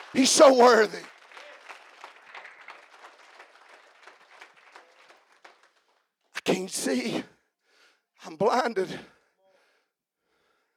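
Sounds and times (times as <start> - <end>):
audience clapping hands: 0.0 - 6.6
speech: 0.1 - 1.1, 6.6 - 7.4, 8.2 - 9.2.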